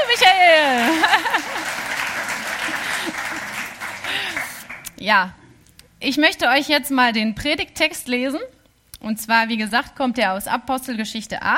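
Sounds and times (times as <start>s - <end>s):
laughter: 0.0s - 4.6s
audience applause: 0.0s - 4.9s
speech: 5.1s - 5.4s, 6.0s - 11.5s.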